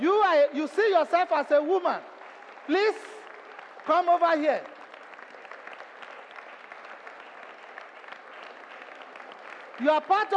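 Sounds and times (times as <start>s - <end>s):
speech: 0.4s - 3.1s, 3.9s - 4.8s, 9.8s - 10.3s
audience clapping: 0.9s - 10.3s.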